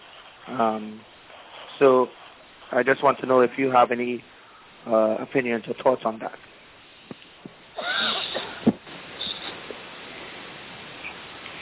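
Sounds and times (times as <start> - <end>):
speech: 0.5 - 1.1, 1.8 - 6.5
cough: 8.0 - 8.6.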